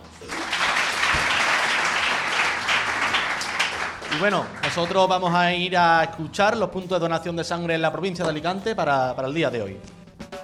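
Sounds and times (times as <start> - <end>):
applause: 0.0 - 5.2
speech: 4.2 - 10.0.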